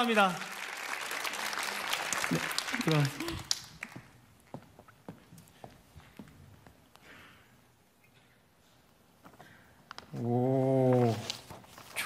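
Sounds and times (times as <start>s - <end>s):
speech: 0.0s - 0.5s, 2.3s - 3.5s, 10.2s - 10.5s
audience applause: 0.0s - 4.2s.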